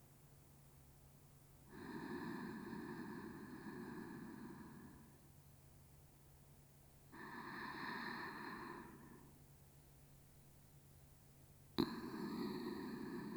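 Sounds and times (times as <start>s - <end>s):
sleep breathing on the left side: 1.7s - 5.3s, 7.1s - 9.4s, 11.8s - 13.3s.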